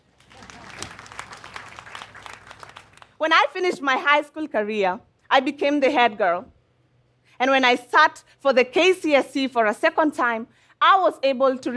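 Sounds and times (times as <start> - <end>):
audience applause: 0.0 - 3.2
speech: 3.2 - 6.6, 7.4 - 11.7.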